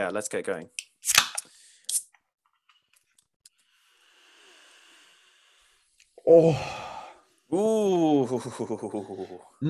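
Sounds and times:
speech: 0:00.0 - 0:01.3, 0:06.3 - 0:06.8, 0:07.5 - 0:09.6
beer can being cracked open: 0:01.0 - 0:02.0.

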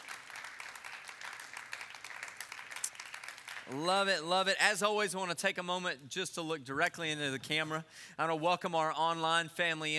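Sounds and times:
church congregation clapping for first-time guests: 0:00.0 - 0:04.5
speech: 0:03.7 - 0:09.9.

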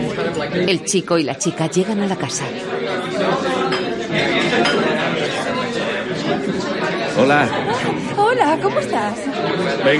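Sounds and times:
overlapping chatter of dinner guests: 0:00.0 - 0:09.9
speech: 0:00.4 - 0:03.5, 0:04.1 - 0:09.9
dishes and cutlery clinking at a large dinner table: 0:03.5 - 0:05.5.

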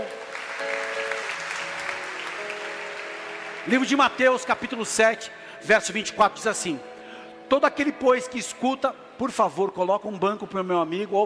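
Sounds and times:
audience applause: 0:00.0 - 0:05.0
speech: 0:03.6 - 0:06.9, 0:07.5 - 0:11.2.

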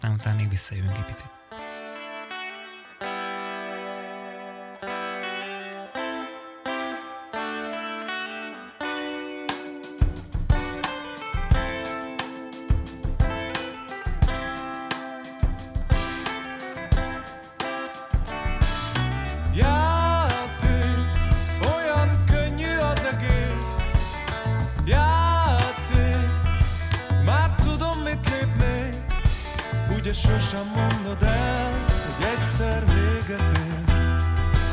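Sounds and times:
speech: 0:00.0 - 0:01.4
recorded song by guest's band with effect-laden guitar and drums: 0:08.1 - 0:34.7.

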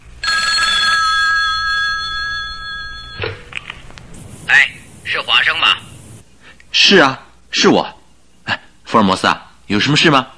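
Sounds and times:
telephone bell ringing: 0:00.2 - 0:03.4
speech: 0:04.6 - 0:05.8, 0:06.8 - 0:10.3.

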